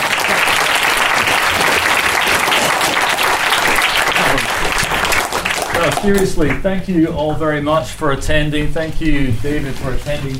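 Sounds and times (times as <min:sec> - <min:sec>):
audience round of applause: 0:00.0 - 0:06.6
speech: 0:06.0 - 0:10.3.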